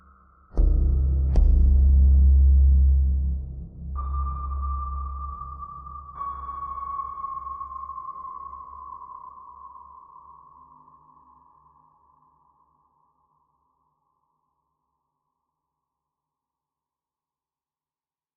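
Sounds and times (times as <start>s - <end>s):
level ambience: 0.0s - 10.2s.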